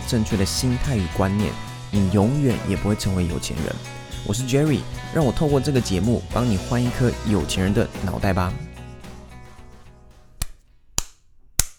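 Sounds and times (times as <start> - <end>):
music: 0.0 - 10.5
speech: 0.1 - 8.6
self-inflicted slaps to the face: 10.4 - 11.7.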